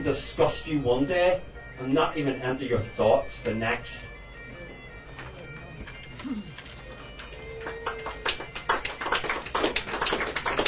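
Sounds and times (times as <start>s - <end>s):
speech: 0.1s - 4.1s, 6.2s - 6.7s
audience slow clapping: 6.0s - 10.6s.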